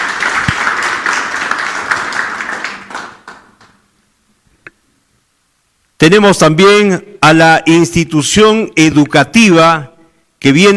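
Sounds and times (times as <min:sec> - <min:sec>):
audience applause: 0:00.0 - 0:03.7
speech: 0:06.0 - 0:10.7.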